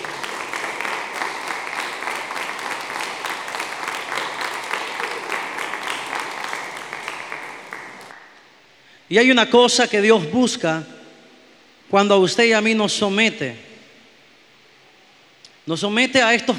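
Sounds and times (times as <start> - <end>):
audience applauding: 0.0 - 8.6
speech: 9.1 - 10.9, 11.9 - 13.7, 15.7 - 16.5.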